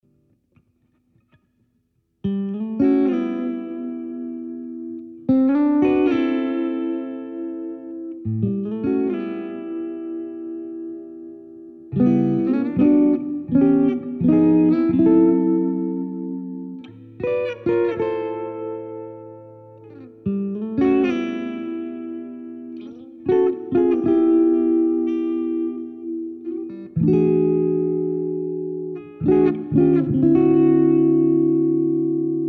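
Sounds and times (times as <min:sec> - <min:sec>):
blues music: 0:02.2 - 0:32.4.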